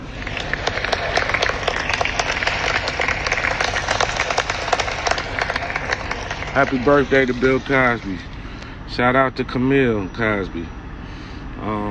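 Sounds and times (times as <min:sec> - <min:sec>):
round of applause: 0:00.0 - 0:08.3
speech: 0:06.6 - 0:08.3, 0:08.9 - 0:10.8, 0:11.6 - 0:11.8.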